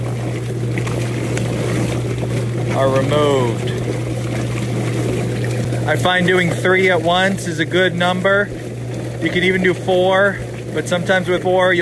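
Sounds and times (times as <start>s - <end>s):
automatic poultry plucker machine running: 0.0s - 11.8s
speech: 2.8s - 3.8s, 5.9s - 8.6s, 9.2s - 11.8s.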